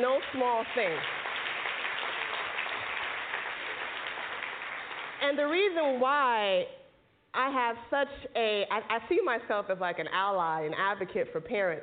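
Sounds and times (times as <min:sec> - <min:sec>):
speech: 0:00.0 - 0:01.2, 0:05.2 - 0:06.8, 0:07.4 - 0:11.8
audience applause: 0:00.3 - 0:05.2.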